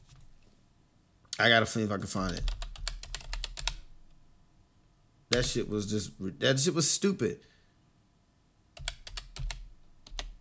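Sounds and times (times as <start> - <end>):
speech: 1.4 - 2.6, 5.3 - 7.5
keyboard typing: 2.2 - 3.9, 5.3 - 5.7, 8.8 - 10.4.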